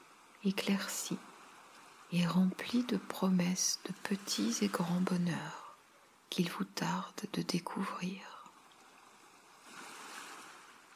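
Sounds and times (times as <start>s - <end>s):
ocean waves breaking on shore: 0.0s - 6.2s, 8.5s - 10.9s
speech: 0.4s - 1.3s, 2.1s - 5.6s, 6.3s - 8.4s.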